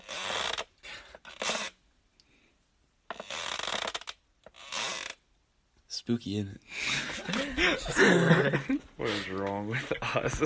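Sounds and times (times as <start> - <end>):
creaky rocking chair: 0.0 - 1.8, 3.1 - 5.2
speech: 6.1 - 10.4
laughter: 6.8 - 10.4.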